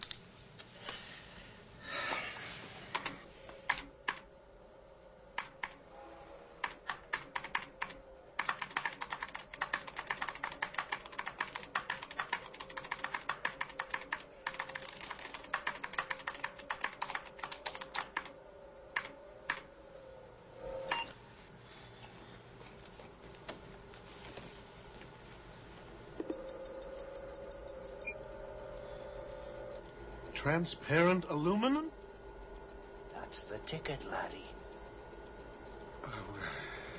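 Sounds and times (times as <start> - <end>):
faint steady hum: 0.0 - 36.9
typing on a computer keyboard: 2.9 - 4.3, 5.3 - 5.8, 6.6 - 19.7
speech: 30.4 - 31.9, 33.7 - 34.6.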